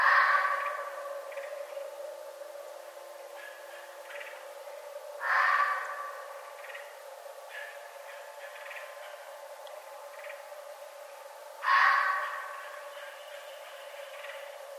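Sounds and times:
red fox raspy call: 0.0 - 1.9, 3.3 - 4.4, 5.2 - 6.9, 7.5 - 9.4, 11.6 - 14.5
low electrical hum: 0.0 - 14.7.

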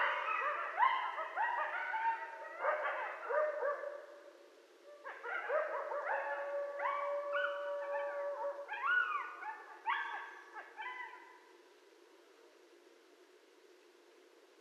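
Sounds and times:
coyotes howling: 0.0 - 4.1, 4.9 - 11.4.

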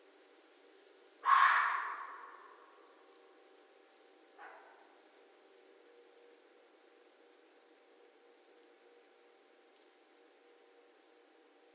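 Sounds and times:
red fox screaming: 1.2 - 2.6.

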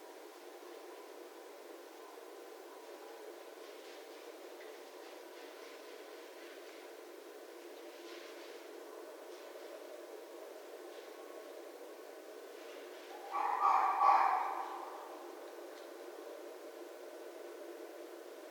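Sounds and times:
red fox calling: 13.2 - 15.3.

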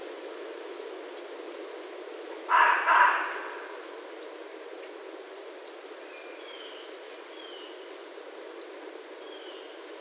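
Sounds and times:
low background hiss: 0.0 - 9.9
red fox barking: 2.5 - 3.7.

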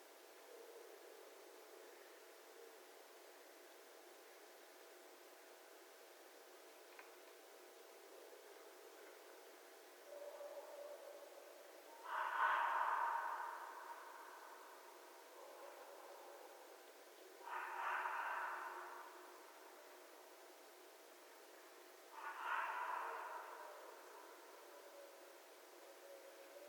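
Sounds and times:
background hiss: 0.0 - 26.6
red fox giving a hoarse call: 11.9 - 16.5, 17.4 - 19.8, 22.1 - 25.2.

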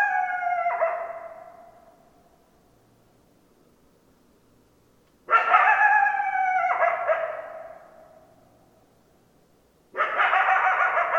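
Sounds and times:
several coyotes howling: 0.0 - 1.9, 5.3 - 8.1, 10.0 - 11.1.

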